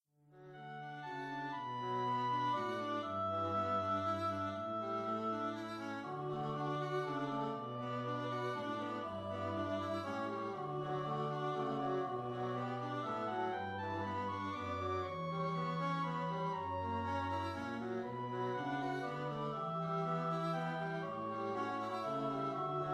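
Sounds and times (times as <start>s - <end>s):
organ: 0.4s - 22.9s.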